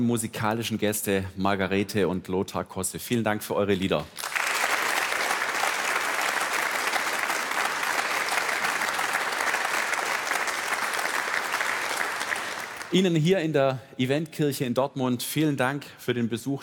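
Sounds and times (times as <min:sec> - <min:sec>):
speech: 0:00.0 - 0:04.4, 0:12.9 - 0:16.6
audience applause: 0:04.2 - 0:13.0.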